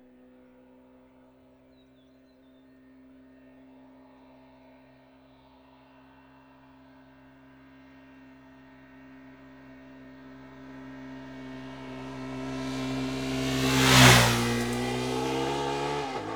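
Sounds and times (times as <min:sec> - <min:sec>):
Suzuki TL 1000 S motorcycle: 0:00.0 - 0:16.3.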